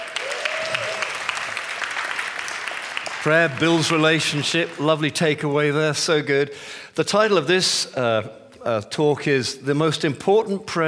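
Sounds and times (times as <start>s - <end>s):
crowd round of applause: 0.0s - 5.1s
speech: 3.2s - 10.8s.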